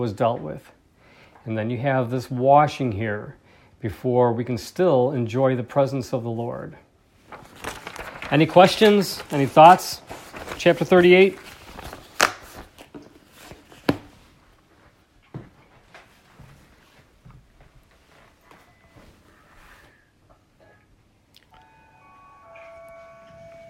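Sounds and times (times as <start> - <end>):
speech: 0.0 - 0.8, 1.4 - 6.8, 8.3 - 11.4
chime signalling time is up: 21.5 - 23.6.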